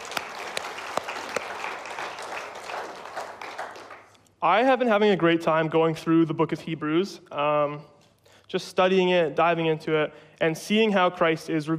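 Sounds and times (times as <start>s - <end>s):
church audience applauding: 0.0s - 4.2s
speech: 4.4s - 11.7s.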